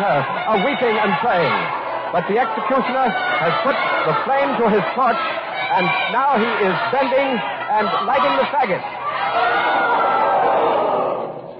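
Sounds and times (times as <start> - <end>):
speech: 0.0 - 9.9
laughter: 0.0 - 11.4
large crowd shouting in protest: 0.0 - 11.5.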